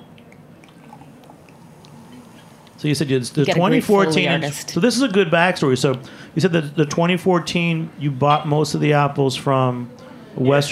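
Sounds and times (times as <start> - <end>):
cider being poured into glass: 0.3 - 2.2
speech: 2.8 - 10.7.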